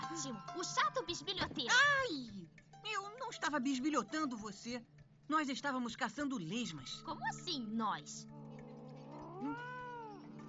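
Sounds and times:
speech: 0.2s - 1.4s, 3.3s - 8.4s
lazy pet cat meowing: 8.4s - 10.4s.

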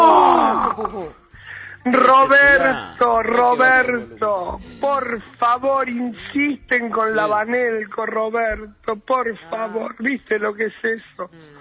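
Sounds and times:
heavy breathing: 1.3s - 1.9s
speech: 1.8s - 11.5s.

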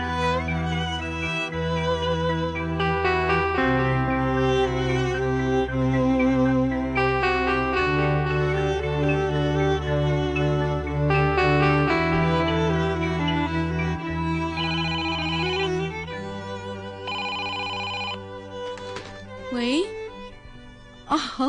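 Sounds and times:
steady humming musical backdrop: 0.0s - 21.4s
telephone ringing with electronic tones: 14.6s - 15.8s, 17.0s - 18.2s.

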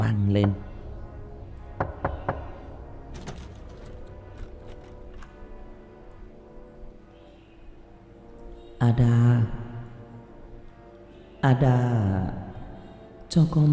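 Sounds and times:
low steady background: 0.0s - 13.7s
speech: 0.1s - 0.7s, 8.9s - 9.2s, 11.4s - 12.2s, 13.3s - 13.7s
knocking from inside a coffin: 1.8s - 2.6s.

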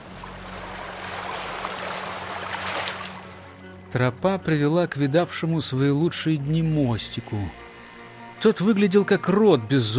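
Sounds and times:
waves lapping against stones: 0.0s - 3.4s
speech: 3.9s - 7.6s, 8.4s - 9.9s.

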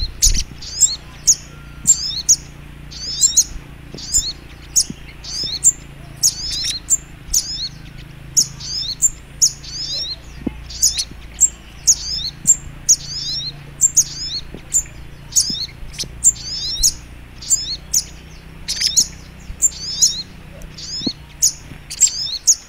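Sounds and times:
faint low hum: 0.0s - 22.6s
songbird song of high sharp chirps and descending trills: 0.0s - 22.6s.

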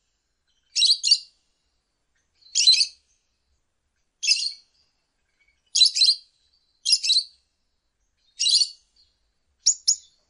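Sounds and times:
lovebird chirping: 0.4s - 1.3s, 2.4s - 3.1s, 4.2s - 7.4s, 8.1s - 10.2s.

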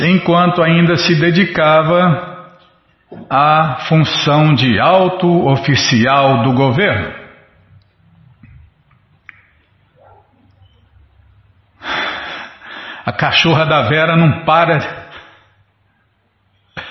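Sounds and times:
speech: 0.0s - 2.3s, 3.1s - 7.2s, 13.1s - 15.0s
faint low rumbling: 6.4s - 11.8s
female dog barking: 10.0s - 10.5s.

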